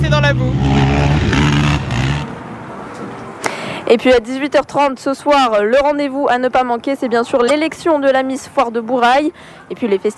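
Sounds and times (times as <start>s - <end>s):
quad bikes revving during a mud race at a fair: 0.0s - 4.2s
speech: 0.2s - 1.5s, 3.9s - 10.1s.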